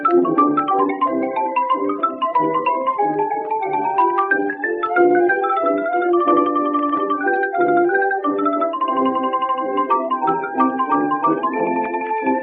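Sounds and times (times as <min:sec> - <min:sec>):
ragtime music from 1918: 0:00.0 - 0:12.4.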